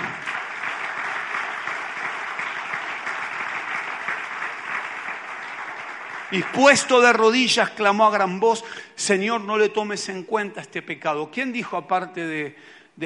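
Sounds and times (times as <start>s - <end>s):
audience applauding: 0.0s - 7.6s
speech: 6.3s - 13.0s.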